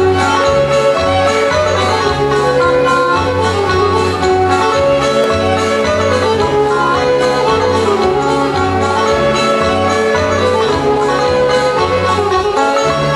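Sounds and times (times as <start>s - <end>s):
German band playing polka: 0.0s - 13.1s.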